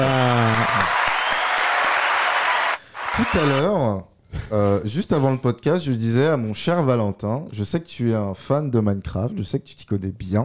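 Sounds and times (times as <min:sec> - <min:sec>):
applause: 0:00.0 - 0:03.6
speech: 0:03.2 - 0:10.4.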